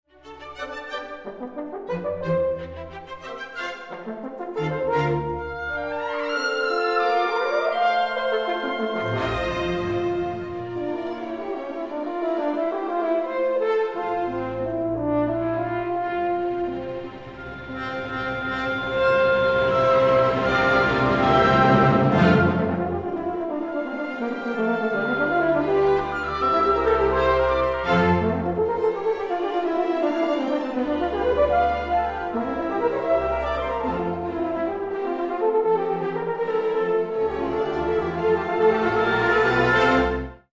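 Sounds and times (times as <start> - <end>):
concert piece for horn and orchestra: 0.1 - 40.5.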